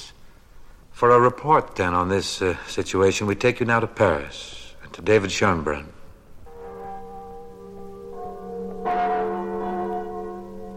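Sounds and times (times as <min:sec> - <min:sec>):
speech: 0:01.0 - 0:06.0
chimes of Notre Dame tolling across the River Seine: 0:06.5 - 0:10.7.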